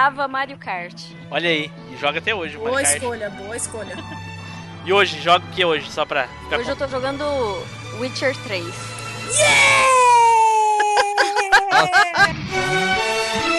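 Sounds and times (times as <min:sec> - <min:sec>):
speech: 0:00.0 - 0:09.9, 0:11.8 - 0:13.4
laughter: 0:03.7 - 0:04.3, 0:10.4 - 0:12.5
shrill scream: 0:09.3 - 0:11.4.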